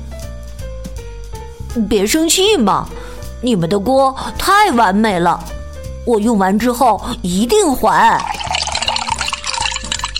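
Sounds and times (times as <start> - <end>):
speech: 1.8 - 8.4
liquid being stirred in a pot: 8.2 - 10.1.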